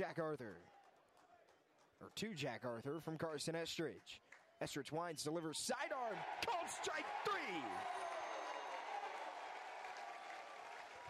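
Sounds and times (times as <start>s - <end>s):
speech: 0.0s - 0.8s, 2.0s - 8.1s
stadium crowd cheering and applauding: 5.2s - 11.0s
whistles: 7.6s - 11.0s.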